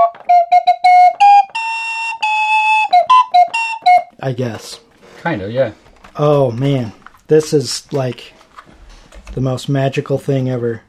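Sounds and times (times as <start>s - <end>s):
25-key keyboard flute playing a short pan pipe-like tune: 0.0s - 4.2s
speech: 4.2s - 8.4s, 9.3s - 10.8s.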